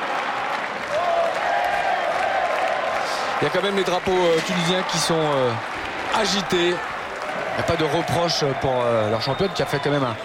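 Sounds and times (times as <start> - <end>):
Roland-Garros tennis crowd applauding: 0.0 - 10.2
speech: 3.4 - 6.9, 7.6 - 10.2.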